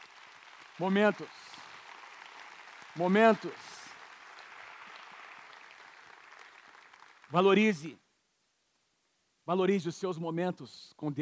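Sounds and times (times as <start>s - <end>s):
audience applause: 0.0s - 7.4s
speech: 0.8s - 1.4s, 3.0s - 3.6s, 7.3s - 8.0s, 9.5s - 11.2s.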